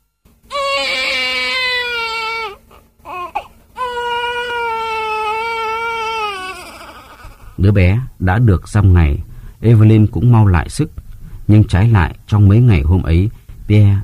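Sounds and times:
newborn baby crying: 0:00.5 - 0:07.6
speech: 0:07.6 - 0:14.0.

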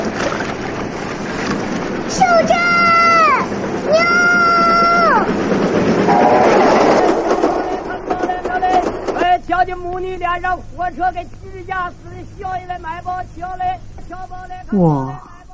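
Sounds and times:
train passing on rails: 0:00.0 - 0:14.7
speech: 0:09.7 - 0:15.3.

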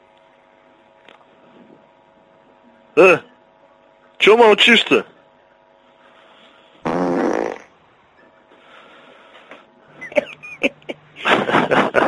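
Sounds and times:
speech: 0:03.0 - 0:03.2, 0:04.2 - 0:05.1
loud raspy fart into a telephone receiver: 0:06.8 - 0:07.7
laughter from two people: 0:09.9 - 0:12.0.

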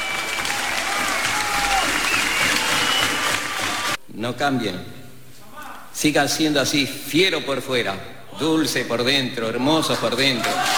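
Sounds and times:
loud audience applause: 0:00.0 - 0:04.0, 0:10.4 - 0:10.7
speech: 0:04.2 - 0:05.0, 0:06.0 - 0:10.7.

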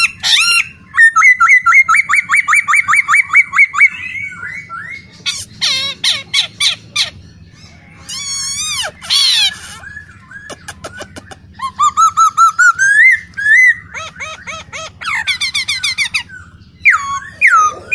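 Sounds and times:
caged masked laughingthrush in full song: 0:00.0 - 0:17.9.

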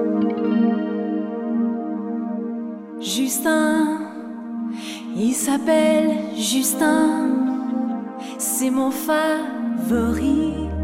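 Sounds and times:
short composed song with warm shimmering effects-laden chord: 0:00.0 - 0:10.8
speech: 0:03.0 - 0:04.0, 0:05.2 - 0:07.6, 0:08.4 - 0:10.7.

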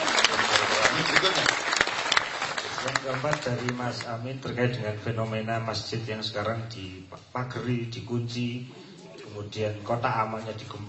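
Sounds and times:
audience at a religious discussion gathering clapping: 0:00.0 - 0:04.3
speech: 0:02.8 - 0:10.8.

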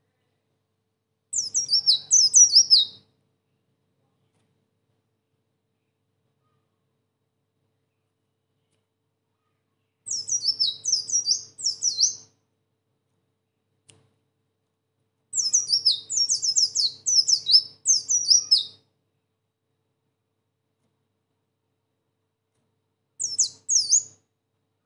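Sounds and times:
sunbird singing a high-pitched twittering song: 0:01.4 - 0:03.0, 0:10.1 - 0:12.2, 0:15.4 - 0:18.8, 0:23.2 - 0:24.2.

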